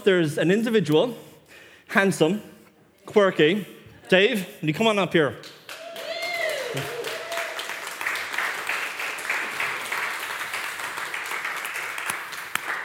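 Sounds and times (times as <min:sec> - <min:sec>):
speech: 0:00.0 - 0:01.3, 0:01.9 - 0:02.5, 0:03.1 - 0:05.6, 0:06.7 - 0:07.0
crowd applauding: 0:05.4 - 0:12.8.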